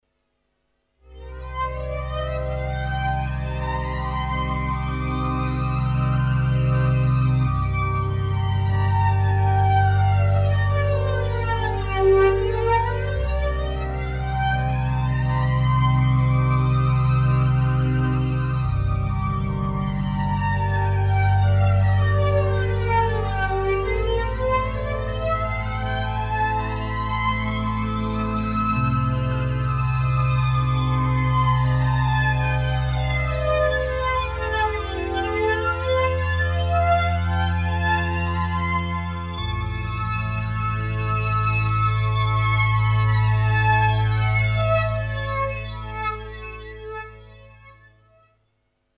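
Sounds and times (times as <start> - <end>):
Korg Trident strings with flanger: 1.1 - 47.6.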